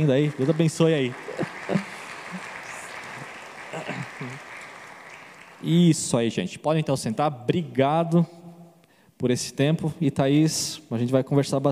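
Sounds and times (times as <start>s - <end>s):
speech: 0.0s - 1.4s, 5.6s - 8.4s, 9.2s - 11.7s
audience applauding: 0.0s - 6.0s
laughter: 1.1s - 4.4s.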